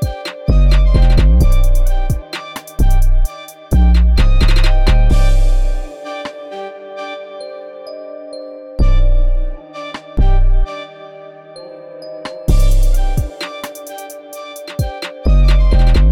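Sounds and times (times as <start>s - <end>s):
trap beats: 0.0s - 6.6s, 8.8s - 10.8s, 12.3s - 16.1s.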